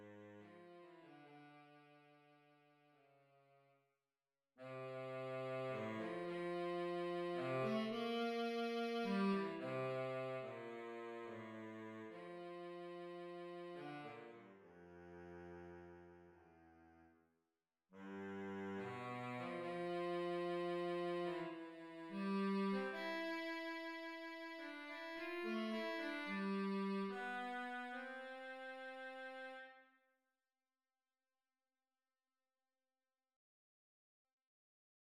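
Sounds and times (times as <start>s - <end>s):
baritone saxophone: 4.6s - 16.4s, 18.0s - 29.8s.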